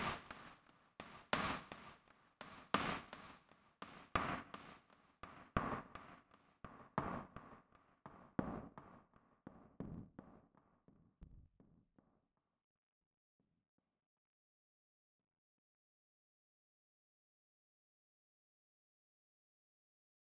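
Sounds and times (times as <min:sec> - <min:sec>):
drums and percussion: 0:00.0 - 0:12.2.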